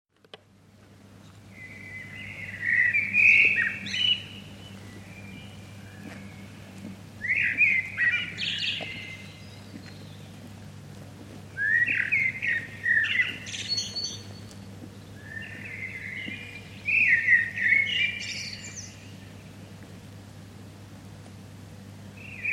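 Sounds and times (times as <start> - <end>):
faint low hum: 0.4 - 22.5
common blackbird singing: 1.5 - 10.4, 11.6 - 19.5, 22.2 - 22.5.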